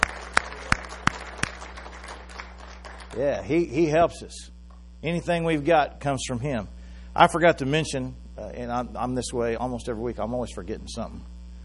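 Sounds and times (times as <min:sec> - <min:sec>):
church congregation clapping during a worship service: 0:00.0 - 0:03.5
speech: 0:03.1 - 0:11.3.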